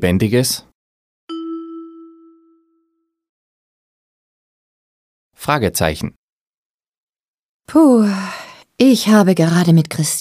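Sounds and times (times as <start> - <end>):
speech: 0.0 - 0.7, 5.4 - 6.2, 7.7 - 10.1
bright chime signal tone in a German language listening exercise: 1.3 - 3.2.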